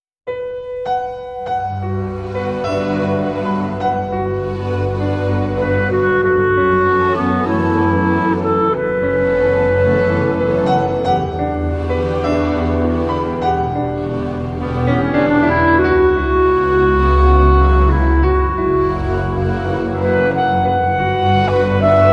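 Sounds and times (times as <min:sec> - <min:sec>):
clarinet: 0:00.3 - 0:22.1
piano: 0:00.3 - 0:22.1.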